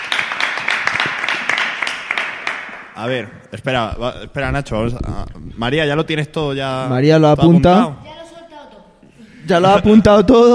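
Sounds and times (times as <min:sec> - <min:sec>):
small group applauding: 0:00.0 - 0:03.0
speech: 0:03.0 - 0:08.1, 0:09.5 - 0:10.5.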